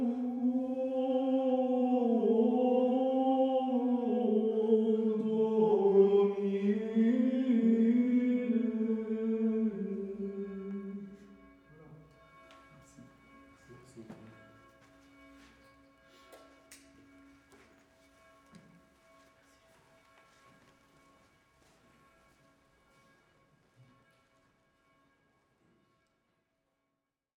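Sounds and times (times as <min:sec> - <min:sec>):
Gregorian chant: 0:00.0 - 0:17.6.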